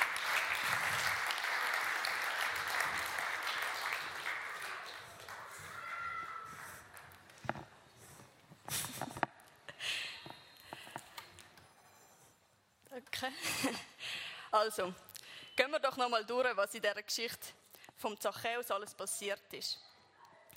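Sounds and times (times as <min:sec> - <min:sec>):
audience giving big applause: 0:00.0 - 0:07.4
speech: 0:13.2 - 0:13.9, 0:14.5 - 0:19.9.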